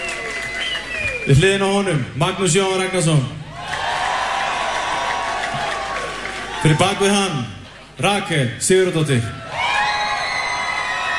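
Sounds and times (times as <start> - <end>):
audience applause and cheering during a band's live set: 0.0 - 1.4, 3.5 - 7.2, 9.6 - 11.1
speech: 1.2 - 3.4, 6.6 - 9.4.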